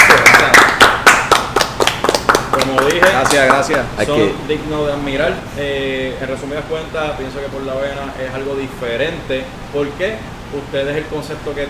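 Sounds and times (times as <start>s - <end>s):
hand clapping: 0.0s - 3.9s
speech: 2.6s - 11.6s.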